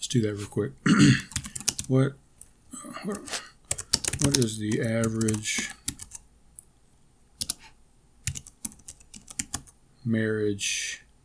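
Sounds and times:
speech: 0:00.0 - 0:02.2, 0:02.8 - 0:03.4, 0:04.2 - 0:05.8, 0:10.0 - 0:11.0
typing on a computer keyboard: 0:01.3 - 0:01.9, 0:03.7 - 0:06.2, 0:07.4 - 0:07.6, 0:08.2 - 0:09.8.

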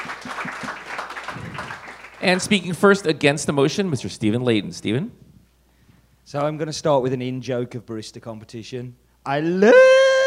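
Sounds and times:
audience applause: 0:00.0 - 0:02.6
speech: 0:02.2 - 0:05.2, 0:06.3 - 0:10.0.

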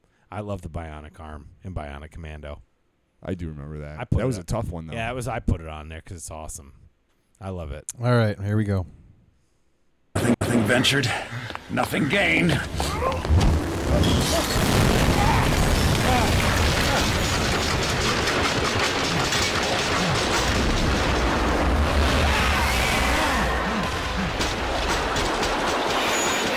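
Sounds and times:
speech: 0:00.3 - 0:06.8, 0:07.4 - 0:09.0, 0:10.2 - 0:15.4
booming hits: 0:12.6 - 0:26.5
Skyhook weapon from Bioshock Infinite rushing and grinding roar: 0:14.6 - 0:26.5.

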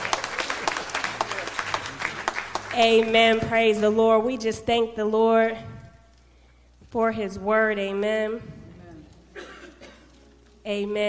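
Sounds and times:
church congregation clapping: 0:00.0 - 0:03.5
speech: 0:02.8 - 0:05.7, 0:06.9 - 0:08.6, 0:10.6 - 0:11.0.

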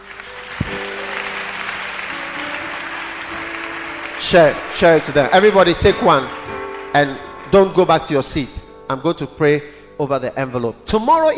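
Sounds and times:
audience clapping: 0:00.0 - 0:08.6
speech: 0:04.2 - 0:11.3.

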